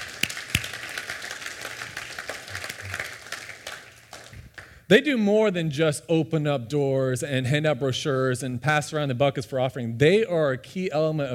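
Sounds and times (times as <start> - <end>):
audience applauding: 0.0 - 4.7
speech: 4.9 - 11.3.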